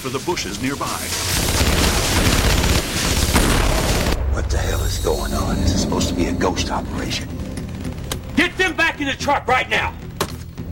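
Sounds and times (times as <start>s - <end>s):
speech: 0.0s - 2.0s, 4.4s - 7.4s, 8.4s - 10.0s
machine gun fire from soldiers: 1.2s - 4.2s.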